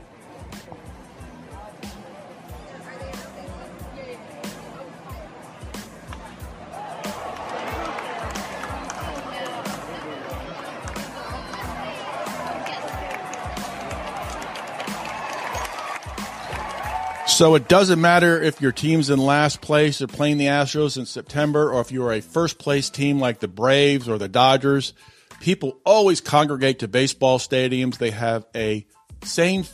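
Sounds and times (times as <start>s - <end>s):
baseball stadium crowd cheering: 1.4s - 20.5s
scattered claps: 6.0s - 6.4s, 7.0s - 18.8s
speech: 17.4s - 29.7s.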